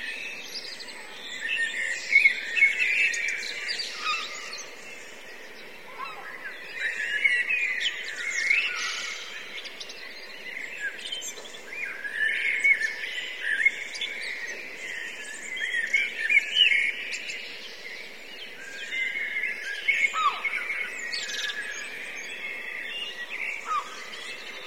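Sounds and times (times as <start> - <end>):
several blackbirds calling in a dense chattering chorus: 0.0 - 24.6.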